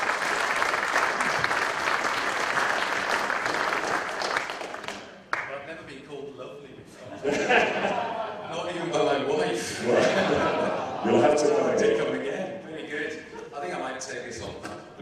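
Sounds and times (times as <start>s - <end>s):
audience applause welcoming a speaker onto the stage: 0.0s - 5.5s
laughter: 6.9s - 14.0s.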